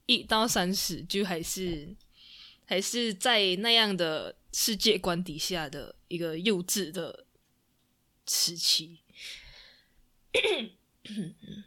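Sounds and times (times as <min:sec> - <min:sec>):
speech: 0:00.1 - 0:02.0, 0:02.7 - 0:07.2, 0:08.3 - 0:09.4, 0:10.3 - 0:11.6
person clearing throat from phlegm: 0:10.3 - 0:11.6.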